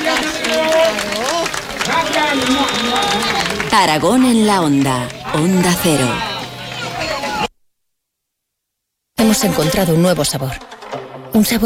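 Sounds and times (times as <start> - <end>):
audience applause: 0.0 - 7.5
speech: 2.3 - 6.3, 9.2 - 10.7, 11.4 - 11.6.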